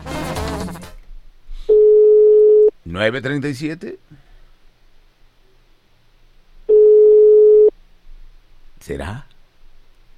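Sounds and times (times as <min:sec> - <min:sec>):
steady single-pitched telephone tone as a radio contest caller dials: 0:01.7 - 0:02.7, 0:06.7 - 0:07.7
speech: 0:03.0 - 0:04.2, 0:08.9 - 0:09.3.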